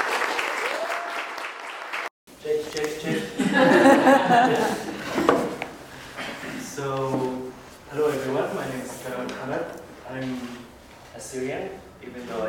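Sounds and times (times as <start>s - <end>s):
crowd clapping: 0.0s - 2.1s
speech: 2.7s - 5.3s, 8.0s - 10.6s, 11.2s - 12.4s
laughter: 3.1s - 5.2s.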